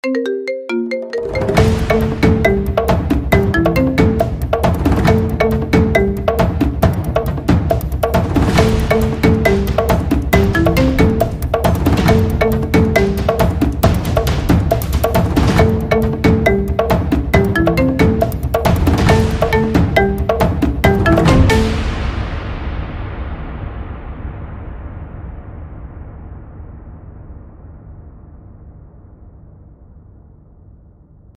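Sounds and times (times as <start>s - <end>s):
drums and marimba ringtone: 0.0s - 22.1s.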